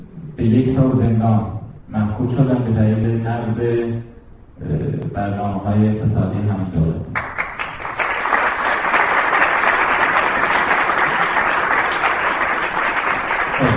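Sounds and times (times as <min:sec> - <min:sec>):
speech: 0:00.4 - 0:07.3
crowd applauding: 0:07.2 - 0:13.7.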